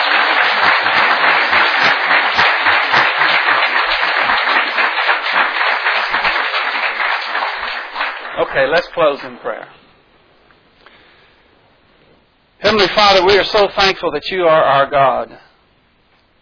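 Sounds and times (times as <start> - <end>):
church congregation applauding: 0.0 - 9.6
speech: 8.6 - 9.8, 12.7 - 15.5.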